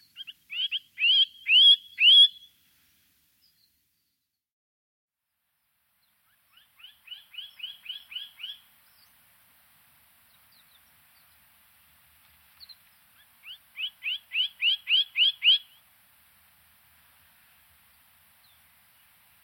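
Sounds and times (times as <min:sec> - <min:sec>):
bird singing: 0:00.0 - 0:02.5, 0:06.0 - 0:09.2, 0:12.6 - 0:15.8.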